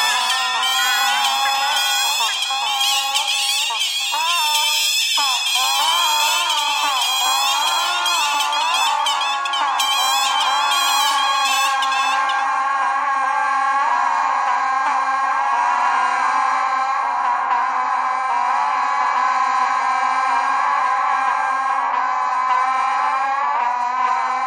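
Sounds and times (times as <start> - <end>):
bagpipe playing: 0.0 - 12.5
geese honking: 0.0 - 24.4.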